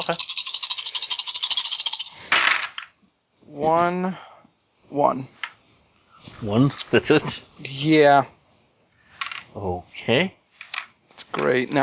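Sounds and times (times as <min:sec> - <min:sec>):
dice rattling and clattering: 0:00.0 - 0:03.0
speech: 0:00.1 - 0:00.5, 0:03.6 - 0:04.3, 0:04.9 - 0:05.4, 0:06.4 - 0:08.4, 0:09.5 - 0:10.4, 0:11.3 - 0:11.8.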